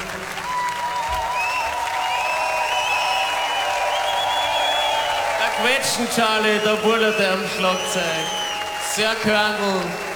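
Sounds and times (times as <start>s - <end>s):
audience applause: 0.0s - 10.1s
whistles and cheers: 0.2s - 10.1s
speech: 5.6s - 10.1s.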